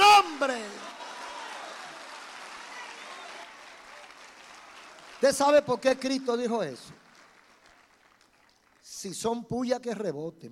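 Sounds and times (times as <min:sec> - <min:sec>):
audience applause: 0:00.0 - 0:08.9
speech: 0:05.2 - 0:07.0, 0:09.0 - 0:10.5.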